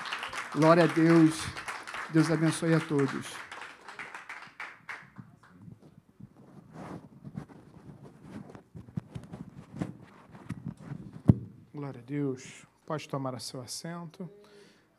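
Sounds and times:
audience clapping: 0:00.0 - 0:05.6
speech: 0:00.5 - 0:03.4, 0:12.1 - 0:14.5.

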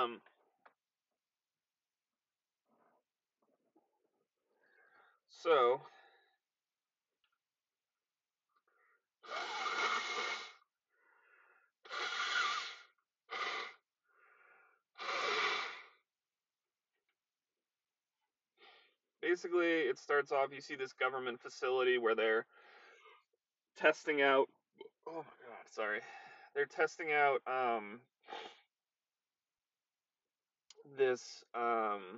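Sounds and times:
speech: 0:00.0 - 0:00.4, 0:05.4 - 0:06.0, 0:19.3 - 0:22.7, 0:23.8 - 0:28.6, 0:30.8 - 0:32.1
person blowing nose: 0:09.2 - 0:10.6, 0:11.8 - 0:13.8, 0:15.0 - 0:15.9.

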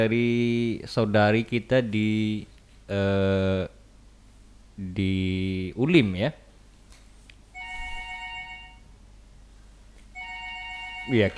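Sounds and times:
speech: 0:00.0 - 0:03.8, 0:04.8 - 0:06.4, 0:11.1 - 0:11.3
low steady hum: 0:00.0 - 0:11.3
telephone ringing with an incoming call: 0:07.6 - 0:08.9, 0:10.2 - 0:11.3.

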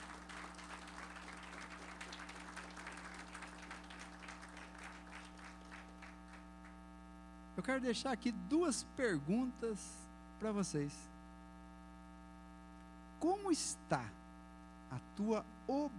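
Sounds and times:
audience applauding: 0:00.0 - 0:06.8
constant low electrical hum: 0:00.0 - 0:15.9
speech: 0:07.6 - 0:11.1, 0:13.2 - 0:14.2, 0:14.9 - 0:15.9.

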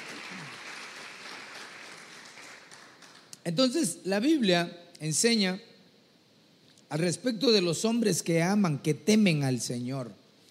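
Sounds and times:
applause: 0:00.0 - 0:03.4
speech: 0:03.4 - 0:05.7, 0:06.9 - 0:10.2.

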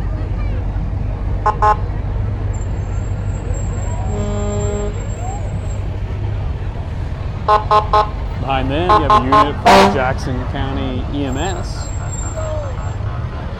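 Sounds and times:
low engine rumble: 0:00.0 - 0:13.5
fire engine horn passing in parade: 0:01.4 - 0:01.9, 0:03.7 - 0:05.3, 0:07.5 - 0:08.2, 0:08.9 - 0:10.1
speech: 0:01.6 - 0:01.9, 0:07.5 - 0:11.9.

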